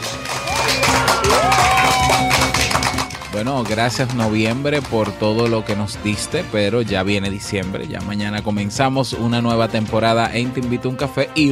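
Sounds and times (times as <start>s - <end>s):
group clapping: 0.0s - 6.3s
speech: 3.3s - 11.4s.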